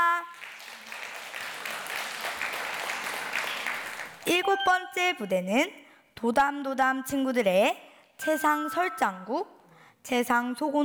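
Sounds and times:
audience applause: 0.3s - 4.3s
speech: 4.2s - 10.8s.

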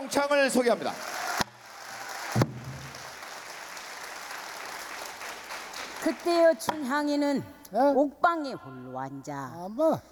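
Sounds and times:
audience applause welcoming a performer: 0.0s - 6.4s
speech: 0.1s - 1.1s, 6.0s - 10.1s
sharp knock: 2.4s - 2.9s.

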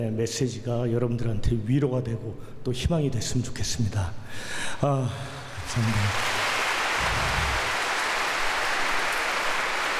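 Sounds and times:
speech: 0.0s - 6.4s
crowd applauding: 5.2s - 9.9s.

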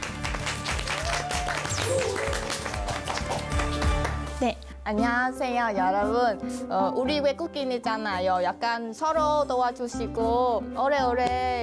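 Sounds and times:
audience clapping: 0.0s - 4.5s
speech: 4.4s - 11.6s.

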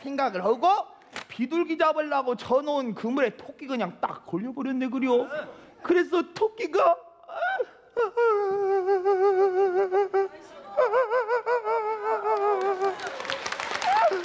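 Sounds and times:
speech: 0.0s - 8.3s
laughter: 8.0s - 14.2s
audience applause at a comic storytelling performance: 12.3s - 14.2s.

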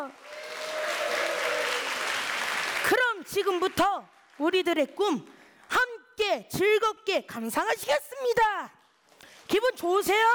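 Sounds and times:
speech: 0.0s - 0.4s, 2.9s - 5.4s, 6.2s - 8.8s, 9.5s - 10.3s
audience applause: 0.0s - 4.4s.

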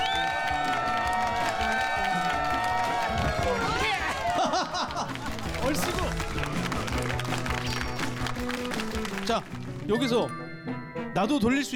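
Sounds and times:
whoops and shouts: 0.0s - 5.2s
laughter: 0.0s - 9.6s
crowd clapping: 0.0s - 10.3s
voices calling out: 0.0s - 10.3s
speech: 9.3s - 10.4s, 11.2s - 11.7s.

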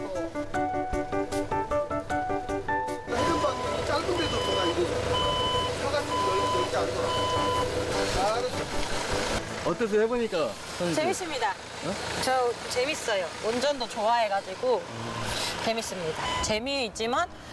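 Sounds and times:
forklift engine rumble: 0.0s - 17.5s
forklift reversing beeps: 3.1s - 9.4s, 11.9s - 16.8s
speech: 9.7s - 17.5s.

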